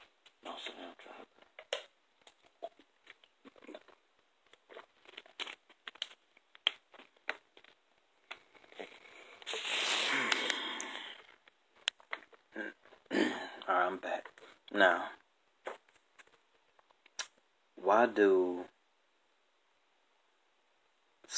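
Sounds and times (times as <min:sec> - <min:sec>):
plastic water bottle crinkling: 0:00.0 - 0:14.8
speech: 0:00.6 - 0:01.6, 0:13.9 - 0:15.2, 0:17.9 - 0:18.7
slurping sip of water: 0:08.6 - 0:11.4.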